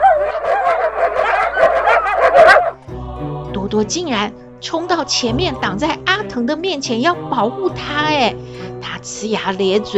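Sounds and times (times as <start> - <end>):
dog barking loudly: 0.0 - 2.8
speech: 3.7 - 9.9.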